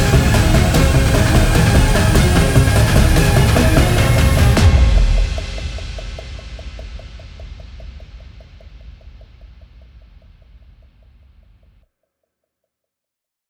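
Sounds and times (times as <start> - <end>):
tense violin: 0.0 - 6.2.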